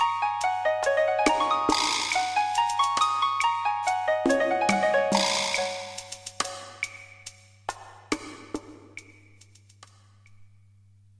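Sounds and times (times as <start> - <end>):
oriental style fantasy music: 0.0 - 8.9.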